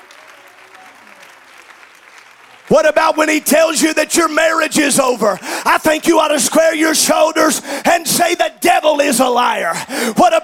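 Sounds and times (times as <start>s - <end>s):
audience clapping hands: 0.0s - 6.7s
speech: 2.7s - 10.4s.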